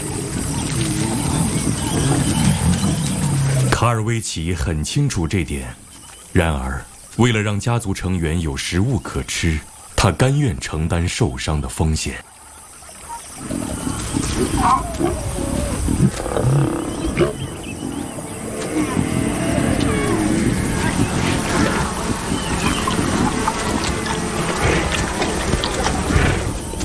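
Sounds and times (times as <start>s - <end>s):
lions growling and snarling while feeding: 0.0s - 3.8s, 13.4s - 26.8s
speech: 3.8s - 12.3s, 13.4s - 13.7s, 14.4s - 15.4s, 16.2s - 17.4s.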